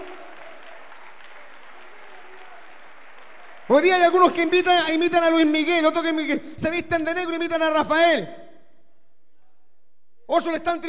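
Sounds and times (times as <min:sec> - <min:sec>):
audience applauding: 0:00.0 - 0:05.4
speech: 0:03.7 - 0:08.4, 0:10.3 - 0:10.8.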